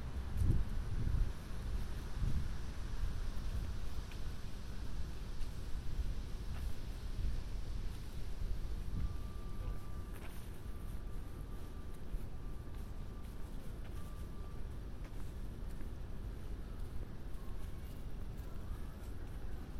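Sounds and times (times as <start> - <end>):
traffic rumble on Broadway on a rainy night: 0.0 - 19.7
faint thin tone: 8.8 - 19.7.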